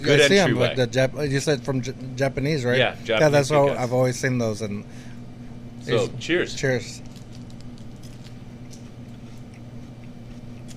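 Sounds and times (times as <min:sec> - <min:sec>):
speech: 0:00.0 - 0:05.1, 0:05.8 - 0:07.1
person biting and chewing a Kit Kat: 0:07.0 - 0:10.7.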